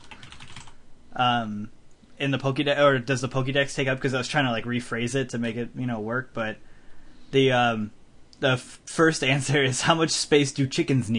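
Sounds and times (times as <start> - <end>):
rapid typing on a computer keyboard: 0.0 - 0.8
speech: 1.2 - 6.7, 7.3 - 11.1.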